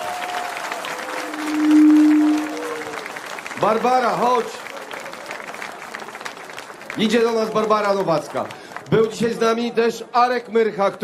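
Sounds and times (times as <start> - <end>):
audience applause: 0.0 - 9.6
faint sustained hum: 0.4 - 3.5
speech: 3.6 - 4.6, 7.0 - 11.0.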